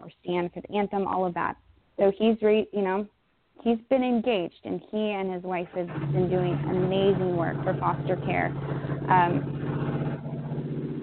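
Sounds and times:
speech: 0.3 - 9.6
construction machinery engine droning next door: 5.6 - 11.0
rising mechanical whine of construction machinery: 5.7 - 11.0.

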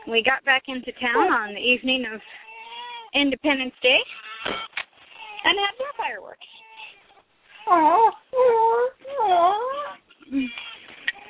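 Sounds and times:
speech: 0.1 - 2.4, 3.1 - 4.8, 5.4 - 6.6, 7.6 - 10.7
baby fussing and crying after spitting out her pacifier: 2.4 - 3.1, 4.1 - 5.7, 6.5 - 11.2.

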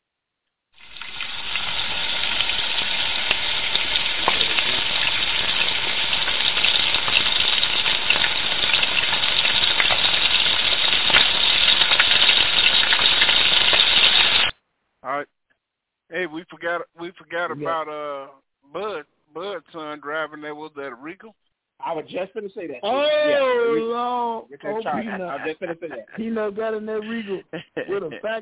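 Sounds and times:
chicken frying in hot oil: 0.8 - 14.5
speech: 16.2 - 28.4
laughter: 24.6 - 26.4, 27.0 - 28.4.

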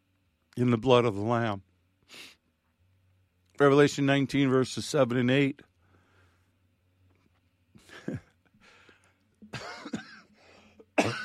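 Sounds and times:
speech: 0.6 - 2.4, 3.6 - 5.7
preacher coughing during a sermon: 7.8 - 8.4, 9.4 - 11.2.

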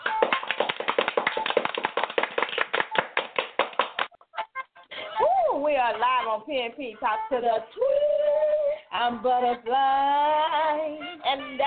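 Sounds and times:
hand clapping: 0.0 - 4.2
speech: 5.8 - 11.6.

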